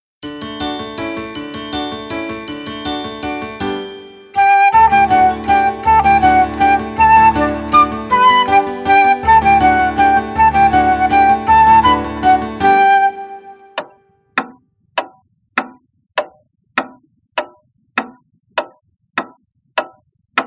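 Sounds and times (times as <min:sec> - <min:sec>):
instrumental music: 0:00.2 - 0:14.6.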